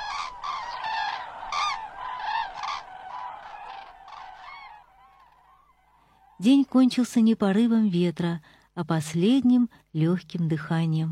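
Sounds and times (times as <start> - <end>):
cranes calling: 0.0 - 6.8
speech: 6.4 - 11.1.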